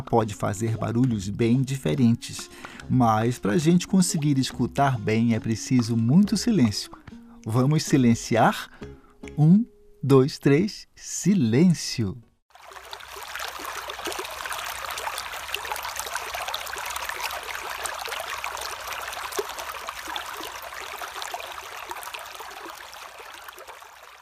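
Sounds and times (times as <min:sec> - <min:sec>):
speech: 0:00.1 - 0:12.3
small fast-flowing stony river: 0:12.6 - 0:24.2.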